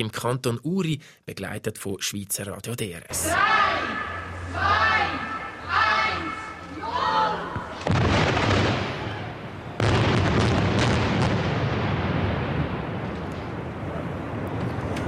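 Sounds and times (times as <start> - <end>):
speech: 0.0 - 3.8, 4.5 - 5.8
symbolic blasting detonation at tunnel construction site: 6.8 - 14.9.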